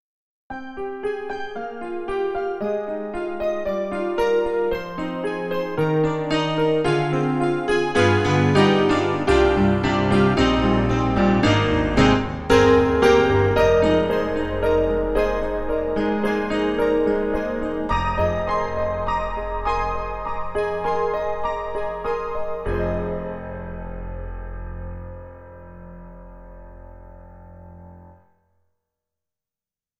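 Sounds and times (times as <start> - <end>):
KORG KRONOS 2 piano: 0.5 - 28.6.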